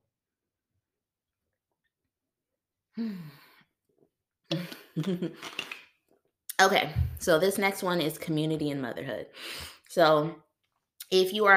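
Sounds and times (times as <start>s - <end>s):
speech: 3.0s - 3.4s, 4.5s - 5.6s, 6.6s - 10.4s, 11.1s - 11.5s
breathy sigh: 3.0s - 3.7s.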